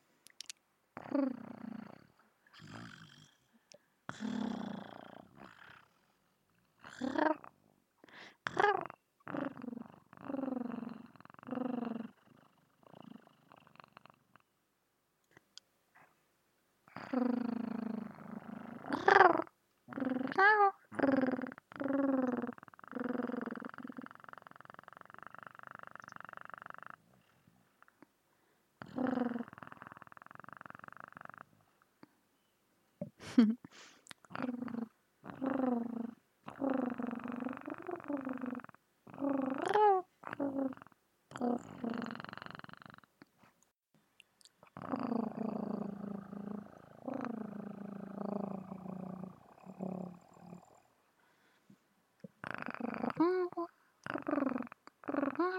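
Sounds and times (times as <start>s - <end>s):
purring: 1.0s - 14.5s, 16.9s - 28.1s, 28.8s - 31.8s, 34.2s - 43.2s, 44.6s - 51.5s, 52.2s - 55.5s.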